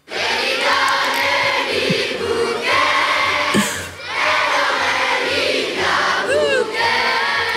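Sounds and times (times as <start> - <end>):
hundreds of schoolchildren singing together outdoors: 0.0 - 7.5
children shouting and squealing: 6.2 - 6.9.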